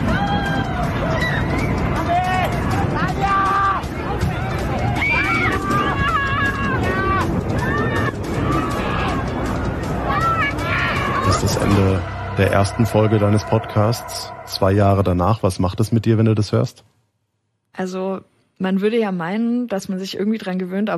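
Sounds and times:
crowd screaming in panic after air show crash: 0:00.0 - 0:14.4
speech: 0:12.5 - 0:16.9, 0:17.8 - 0:20.9.

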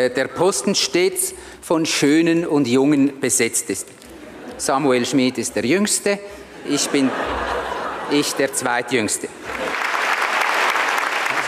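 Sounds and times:
speech: 0:00.0 - 0:09.8
laughter: 0:06.5 - 0:10.1
audience applause: 0:09.4 - 0:11.4.

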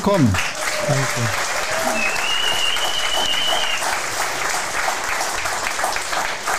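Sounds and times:
speech: 0:00.0 - 0:01.4
audience applause: 0:00.0 - 0:06.5
high whistle-like tone: 0:01.9 - 0:03.8.

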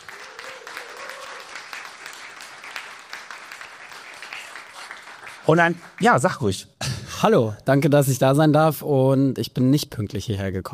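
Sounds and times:
audience applause: 0:00.0 - 0:06.4
speech: 0:05.5 - 0:10.7.

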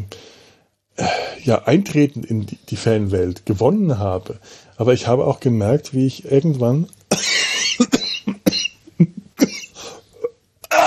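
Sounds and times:
speech: 0:01.4 - 0:07.3
person coughing after choking on something swallowed the wrong way: 0:07.1 - 0:10.8.

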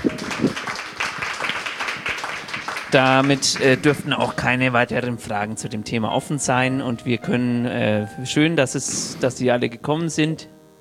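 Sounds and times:
hand clapping: 0:00.0 - 0:04.4
speech: 0:02.9 - 0:10.6.

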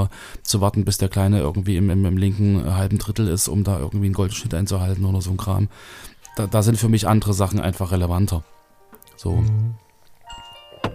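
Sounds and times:
speech: 0:00.2 - 0:08.6, 0:09.2 - 0:09.8
alarm clock ringing: 0:10.3 - 0:10.9.

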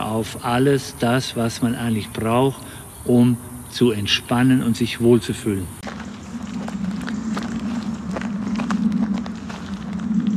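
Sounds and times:
low drone: 0:00.0 - 0:10.3
speech: 0:00.1 - 0:05.9
footsteps of people strolling slowly: 0:05.5 - 0:10.3.

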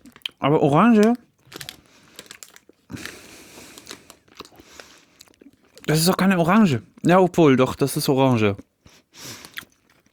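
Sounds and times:
plastic bag crinkling: 0:00.0 - 0:07.0, 0:09.3 - 0:10.1
chewing and biting gummy bears: 0:00.0 - 0:07.5, 0:08.4 - 0:10.1
speech: 0:00.4 - 0:01.3, 0:05.9 - 0:09.3.

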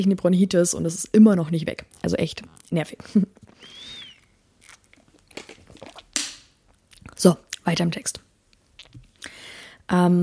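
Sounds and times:
speech: 0:00.0 - 0:03.8, 0:07.2 - 0:08.3, 0:09.9 - 0:10.2
slurping and swallowing while taking a sip of a drink: 0:04.1 - 0:06.2.

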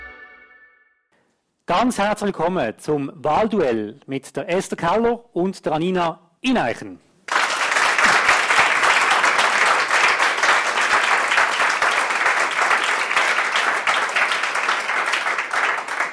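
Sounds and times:
speech: 0:01.7 - 0:07.1
warm audience applause: 0:07.3 - 0:16.1.

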